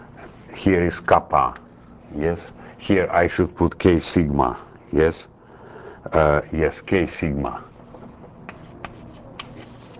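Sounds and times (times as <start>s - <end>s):
speech: 0.6s - 5.3s, 6.0s - 7.7s
pen or chalk strokes writing down a formula: 7.7s - 9.9s.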